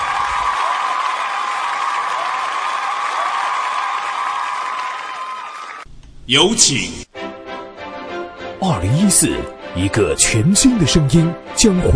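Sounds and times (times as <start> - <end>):
applause: 0.0 - 5.9
speech: 6.3 - 7.1, 8.6 - 11.9.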